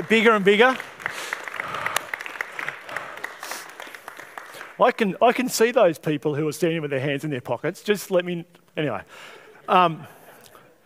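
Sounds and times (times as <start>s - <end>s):
crowd applauding: 0.0s - 5.1s
speech: 0.1s - 0.9s, 4.8s - 10.2s.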